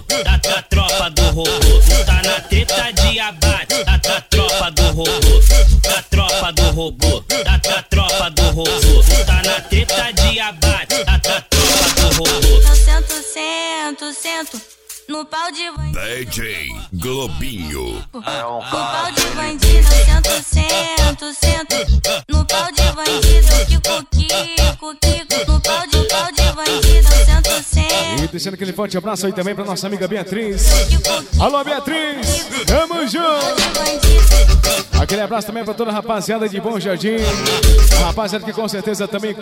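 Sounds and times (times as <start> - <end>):
funk pisadinha sertanejo music: 0.0 - 13.3, 18.9 - 28.4, 30.6 - 35.4, 37.2 - 38.9.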